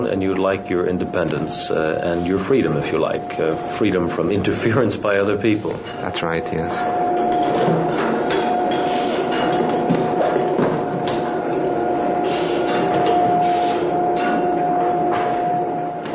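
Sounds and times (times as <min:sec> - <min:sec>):
speech: 0:00.0 - 0:07.0
faint rhythmic knocks: 0:00.0 - 0:16.1
high whine: 0:00.0 - 0:16.1
winery bottling room machinery clattering: 0:00.0 - 0:16.1.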